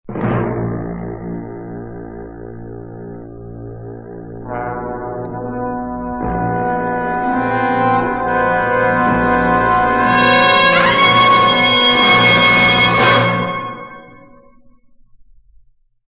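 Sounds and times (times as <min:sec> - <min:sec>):
wave music: 0:04.4 - 0:14.7.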